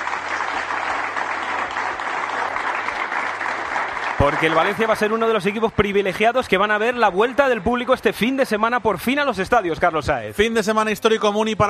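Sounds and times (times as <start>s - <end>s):
football team applauding its fans: 0.0s - 8.8s
speech: 4.2s - 11.6s.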